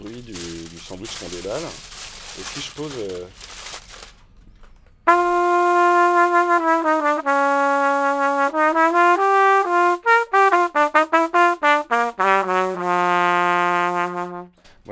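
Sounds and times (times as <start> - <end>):
speech: 0.2 - 3.6
trumpet muted with aluminium foil playing a melody: 5.1 - 14.6.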